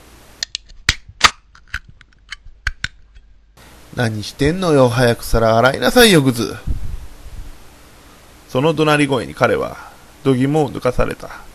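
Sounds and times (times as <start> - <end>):
pull-tab can opening: 0.4 - 3.2
speech: 4.0 - 6.7, 8.5 - 11.4.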